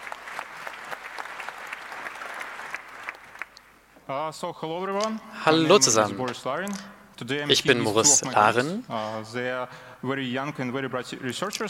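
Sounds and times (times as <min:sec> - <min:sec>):
audience applause: 0:00.0 - 0:03.6
speech: 0:04.1 - 0:11.6.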